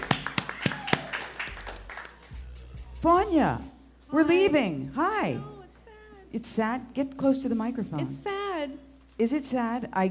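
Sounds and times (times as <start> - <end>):
audience clapping to welcome a guest: 0.0 - 2.5
speech: 3.0 - 5.5, 6.3 - 8.4, 9.2 - 10.0.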